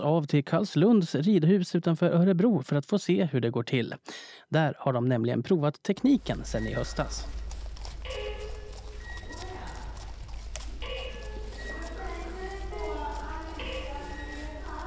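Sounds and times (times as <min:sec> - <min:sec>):
speech: 0:00.0 - 0:07.4
horse hooves clopping across the floor of an indoor riding arena: 0:06.2 - 0:14.8
electronic beeps and whistling tones: 0:06.5 - 0:07.3.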